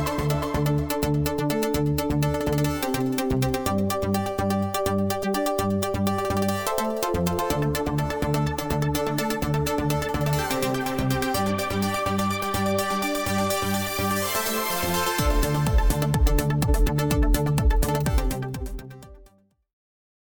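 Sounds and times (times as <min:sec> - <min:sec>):
dj music montage: 0:00.0 - 0:19.3.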